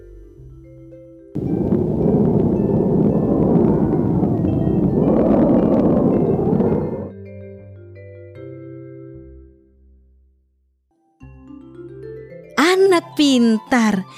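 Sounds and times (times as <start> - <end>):
soft tonal music: 0.1 - 7.1
strong whistling wind rushing: 1.4 - 7.1
speech: 13.2 - 14.1.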